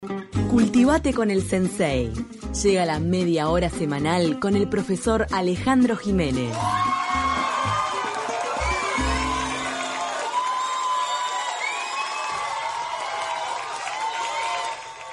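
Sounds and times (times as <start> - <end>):
speech: 0.1 - 7.1
crowd ovation with cheering, whoops and shouts: 6.5 - 15.1.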